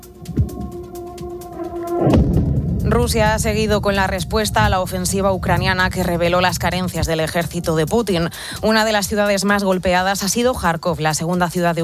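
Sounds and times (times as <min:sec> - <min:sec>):
steady droning tone: 0:00.0 - 0:09.2
explosions during bombardment: 0:02.0 - 0:08.7
speech: 0:02.9 - 0:11.8.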